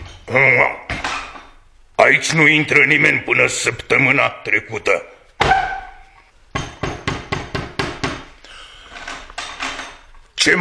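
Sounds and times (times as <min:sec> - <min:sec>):
speech: 0:00.3 - 0:00.9, 0:02.0 - 0:05.6
knocking on a door: 0:06.6 - 0:08.3.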